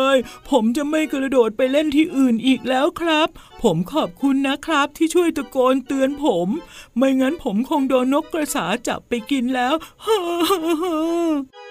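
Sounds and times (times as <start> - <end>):
speech: 0.2 - 11.6
voice performing a sob: 9.5 - 11.5.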